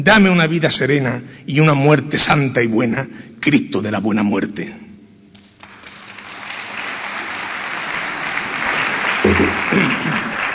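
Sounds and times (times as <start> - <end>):
speech: 0.0 - 4.8
theatre audience applause: 5.6 - 10.5.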